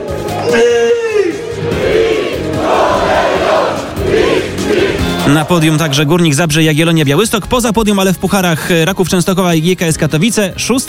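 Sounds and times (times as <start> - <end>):
football supporters shouting and chanting: 0.0 - 6.5
speech: 0.5 - 0.8, 5.3 - 10.8.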